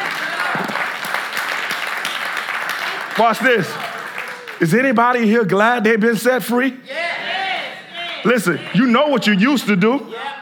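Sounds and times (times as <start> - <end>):
audience clapping: 0.0 - 5.3, 8.0 - 9.2
speech: 3.2 - 3.9, 4.6 - 7.0, 8.2 - 10.3.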